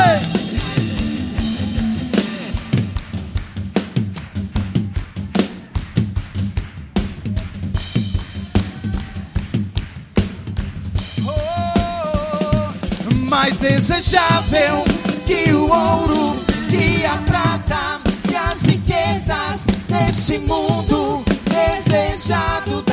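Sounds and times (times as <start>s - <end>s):
loud clapping: 0.0s - 15.4s, 18.1s - 19.0s
drums: 0.0s - 22.9s.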